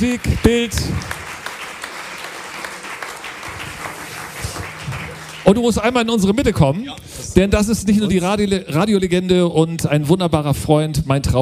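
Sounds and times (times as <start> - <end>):
speech: 0.0 - 1.2, 5.5 - 11.4
audience applause: 0.0 - 6.7.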